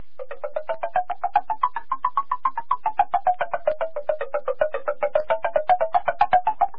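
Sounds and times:
wooden percussion melody going up and down: 0.0s - 6.7s.

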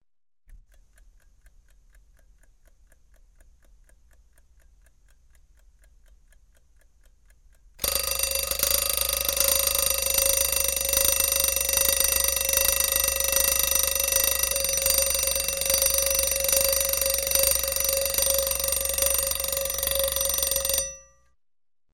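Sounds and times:
old alarm clock ticking: 1.0s - 21.3s
old alarm clock ringing: 7.8s - 21.2s.

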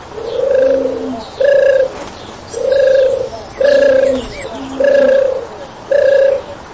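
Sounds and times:
pigeons cooing: 0.0s - 6.7s.

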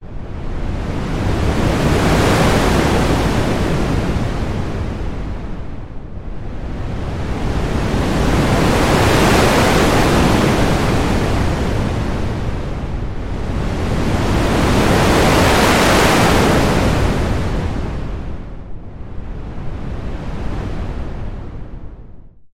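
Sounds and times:
heavy wind: 0.0s - 22.4s.

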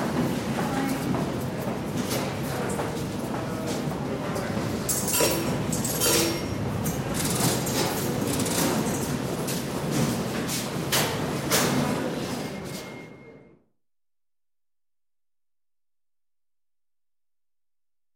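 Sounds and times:
metro station ambience: 0.0s - 13.7s.

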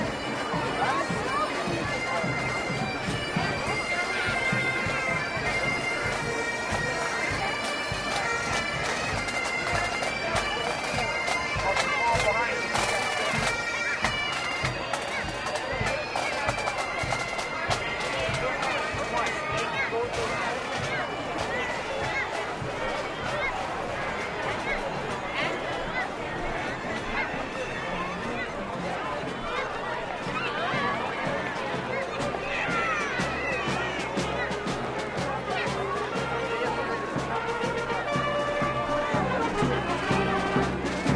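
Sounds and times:
bagpipe: 0.0s - 41.1s
crowd at a festival: 0.0s - 41.1s
drums: 0.0s - 41.1s
trombones: 36.3s - 41.1s.

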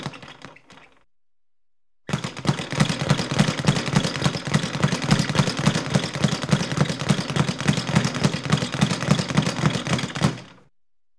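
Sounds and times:
fast punches on a boxing punching bag: 2.1s - 10.6s.

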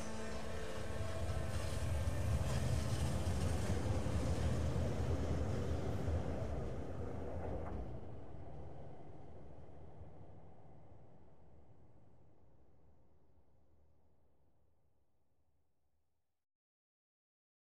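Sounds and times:
tram approaching a stop, waiting and departing: 0.1s - 8.1s.

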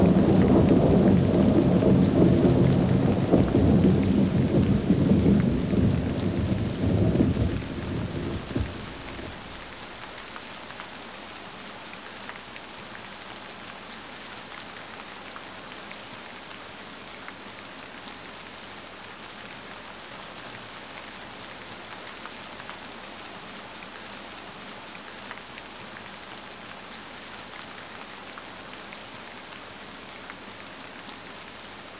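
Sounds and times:
thunder: 0.0s - 10.1s
rain in a thunderstorm: 0.0s - 31.9s.

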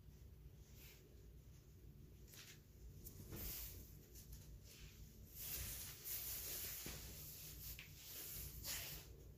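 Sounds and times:
clothes rustling while undressing: 0.2s - 9.3s.

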